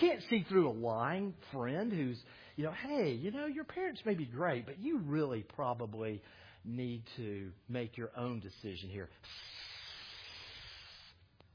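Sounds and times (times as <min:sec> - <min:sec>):
speech: 0:00.0 - 0:09.6
voice imitating Satan hissing during a sermon: 0:09.2 - 0:11.2.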